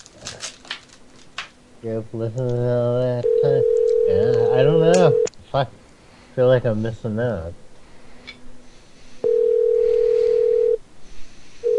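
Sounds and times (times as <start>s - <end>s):
hiss: 0.0s - 11.7s
speech: 1.8s - 5.8s, 6.4s - 7.6s
telephone line ringing: 3.2s - 5.3s, 9.2s - 10.8s.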